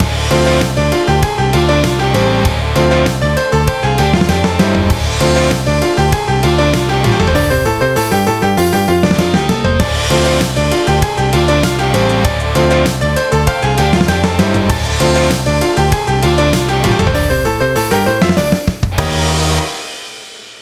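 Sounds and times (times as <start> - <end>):
chiptune rock music: 0.0 - 20.2.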